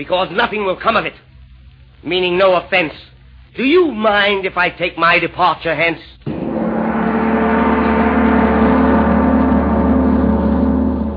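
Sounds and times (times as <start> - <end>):
speech: 0.0 - 1.3, 2.0 - 6.2
big brass gong ringing: 6.3 - 11.1.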